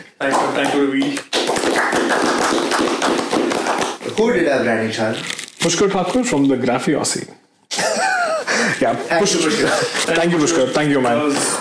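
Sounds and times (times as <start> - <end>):
speech: 0.1 - 2.3, 4.2 - 7.4, 8.8 - 11.5
small group applause: 1.3 - 4.0
laughter: 7.7 - 10.1.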